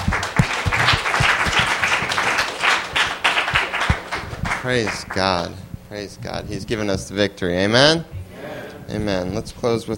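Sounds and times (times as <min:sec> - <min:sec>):
audience hand clapping: 0:00.0 - 0:05.5
speech: 0:04.6 - 0:08.2, 0:08.9 - 0:09.9.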